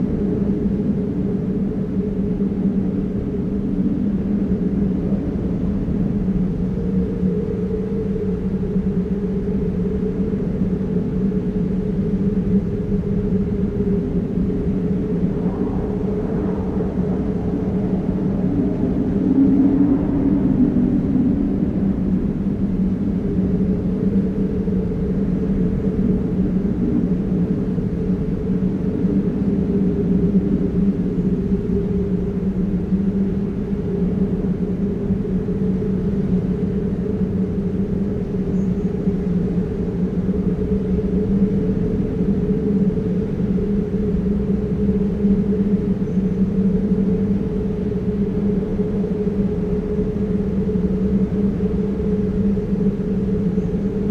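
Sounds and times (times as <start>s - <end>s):
wind in a ghost town: 0.0s - 54.0s.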